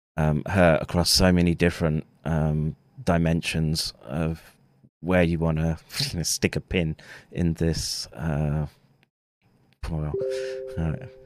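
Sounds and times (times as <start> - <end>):
speech: 0.2 - 8.8, 9.8 - 11.2
Telegram notification beeping: 10.1 - 11.2.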